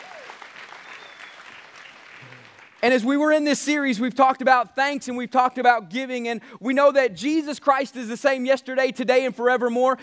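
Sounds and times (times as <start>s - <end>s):
audience applause: 0.0s - 2.8s
speech: 2.8s - 10.0s.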